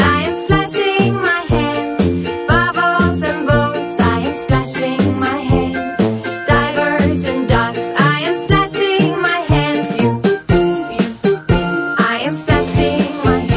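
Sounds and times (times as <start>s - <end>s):
children's song: 0.0s - 13.5s.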